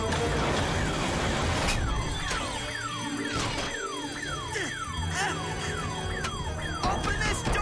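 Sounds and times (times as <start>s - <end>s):
security alarm: 0.0s - 7.5s.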